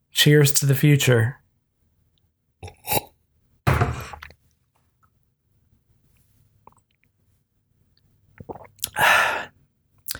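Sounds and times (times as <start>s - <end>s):
speech: 0.2s - 1.4s
person swallowing a drink: 2.6s - 3.1s, 3.7s - 4.4s, 8.4s - 9.3s.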